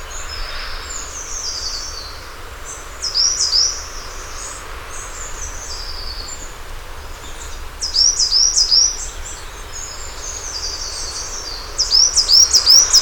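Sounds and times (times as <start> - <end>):
birds singing in a conifer forest: 0.0 - 13.0.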